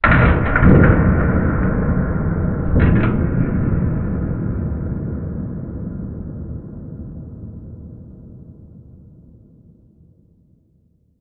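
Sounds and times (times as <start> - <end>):
distant big hit: 0.0 - 8.0.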